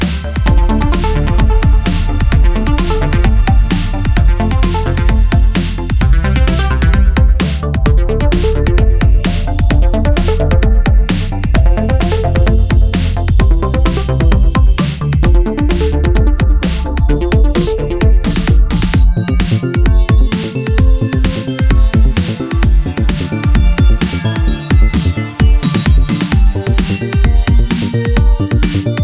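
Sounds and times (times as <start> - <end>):
synthesized space waves: 0.0 - 28.9.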